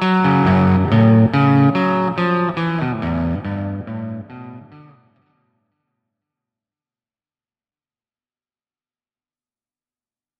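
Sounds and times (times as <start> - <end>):
bass line played through Sunface on light boost: 0.0 - 4.7.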